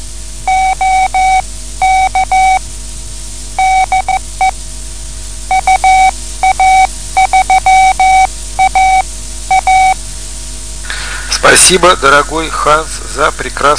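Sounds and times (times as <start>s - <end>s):
faint radio static: 0.0s - 13.7s
low hum: 0.0s - 13.7s
amateur radio Morse code greeting tone: 0.5s - 2.6s, 3.6s - 4.6s, 5.5s - 10.0s
speech: 11.6s - 13.7s.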